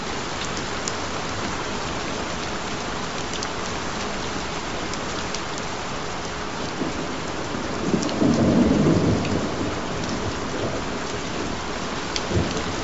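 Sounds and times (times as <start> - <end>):
relaxing rain: 0.0 - 12.8.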